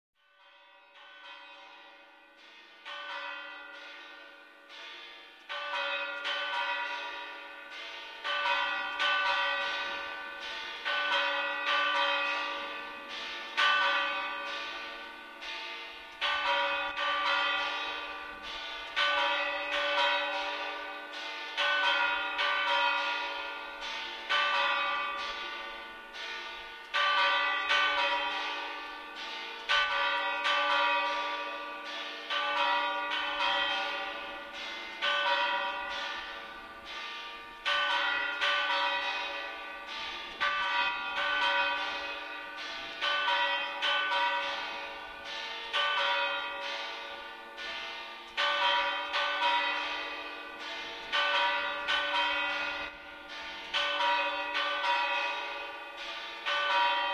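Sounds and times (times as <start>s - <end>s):
bell: 0.2s - 57.1s.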